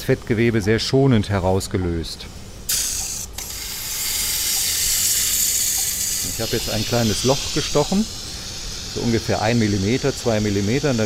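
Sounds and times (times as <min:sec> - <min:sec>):
speech: 0:00.0 - 0:02.9, 0:06.4 - 0:08.2, 0:09.0 - 0:11.0
high-pressure water jet spraying from cannula: 0:02.7 - 0:11.0.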